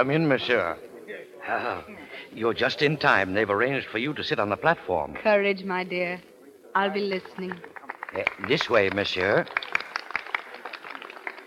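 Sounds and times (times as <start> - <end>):
speech: 0.0 - 9.7
audience applauding: 7.2 - 11.4.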